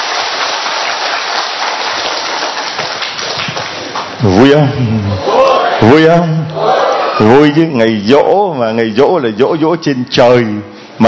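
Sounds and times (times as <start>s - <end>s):
loud sustained audience applause: 0.0s - 4.2s
speech: 4.2s - 11.0s.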